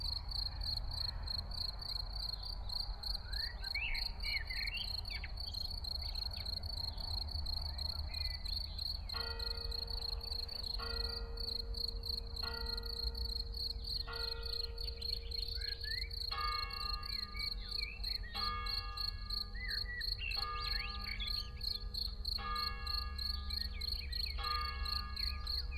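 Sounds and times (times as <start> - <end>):
field cricket chirping in a small village near Lake Constance: 0.0 - 25.7.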